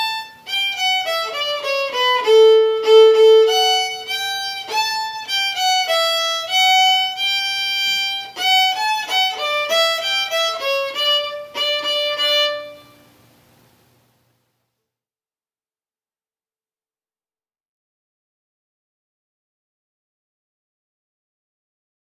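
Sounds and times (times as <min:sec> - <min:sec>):
slow fiddle tune: 0:00.0 - 0:13.2.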